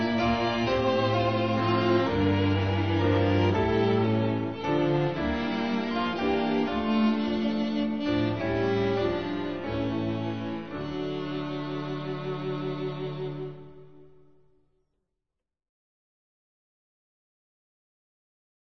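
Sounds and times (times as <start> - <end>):
instrumental hymn: 0.0 - 14.2.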